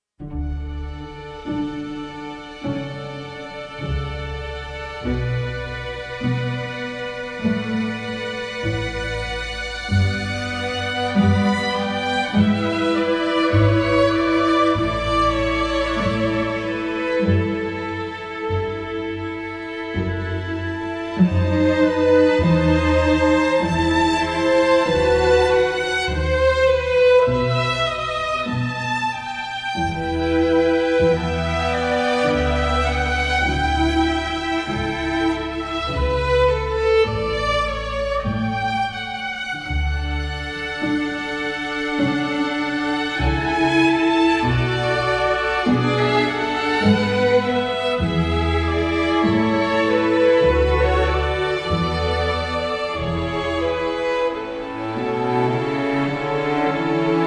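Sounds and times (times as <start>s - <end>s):
orchestral music: 0.2s - 57.2s.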